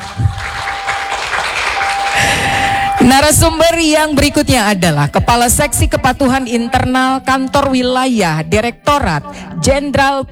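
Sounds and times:
audience applause: 0.0s - 3.5s
speech: 3.0s - 10.3s.

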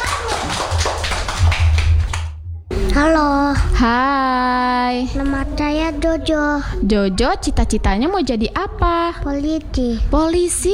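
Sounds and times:
clapping for a young boy who wants to be a police officer: 0.0s - 2.4s
steady low hum: 1.2s - 10.7s
speech: 3.0s - 10.7s.

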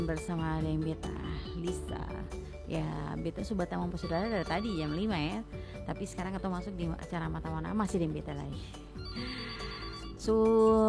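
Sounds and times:
speech: 0.0s - 9.5s, 10.2s - 10.8s
telephone ring tone for a caller to an evening radio call-in show: 4.0s - 5.2s, 9.0s - 10.3s.

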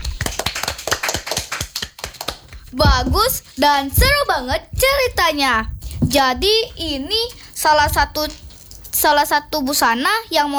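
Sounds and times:
audience clapping after a child finishes telling her story: 0.0s - 4.1s
speech: 2.7s - 8.4s, 9.0s - 10.5s.

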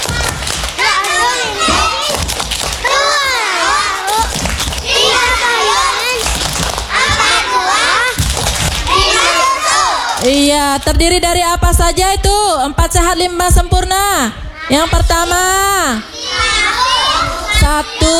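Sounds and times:
group of children chanting: 0.0s - 8.2s, 8.8s - 10.2s, 16.0s - 18.1s
children's hand claps: 0.0s - 9.3s
speech: 10.2s - 16.1s.

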